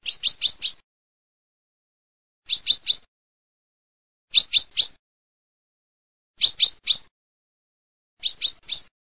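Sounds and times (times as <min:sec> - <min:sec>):
chaffinch singing: 0:00.0 - 0:00.8, 0:02.5 - 0:03.1, 0:04.3 - 0:05.0, 0:06.4 - 0:07.1, 0:08.2 - 0:08.9.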